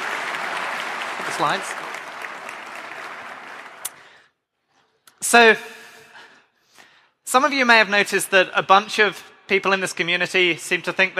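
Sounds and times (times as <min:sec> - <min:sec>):
audience applause welcoming a speaker at a talk on AI: 0:00.0 - 0:04.2
speech: 0:01.2 - 0:01.9, 0:05.2 - 0:05.8, 0:07.3 - 0:11.1.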